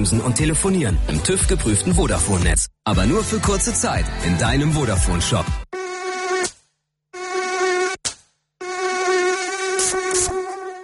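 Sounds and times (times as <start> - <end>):
speech: 0.0 - 5.7
mosquito whine: 5.8 - 6.5, 7.2 - 8.0, 8.6 - 10.8.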